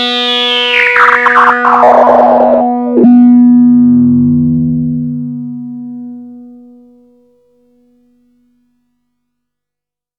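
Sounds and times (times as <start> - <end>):
EDP Wasp synthesizer low-pass filter resonance: 0.1 - 6.8.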